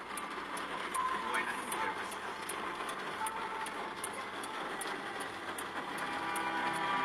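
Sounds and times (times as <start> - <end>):
rain: 0.0 - 7.0.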